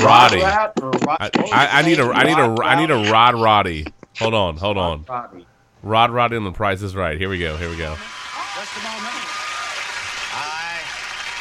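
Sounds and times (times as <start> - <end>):
speech: 0.0 - 9.3
game show audience applause: 7.6 - 11.3.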